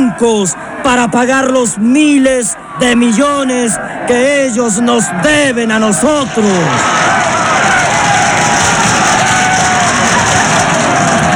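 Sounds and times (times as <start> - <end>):
speech: 0.2 - 7.4
crowd applauding a speech: 5.9 - 11.3.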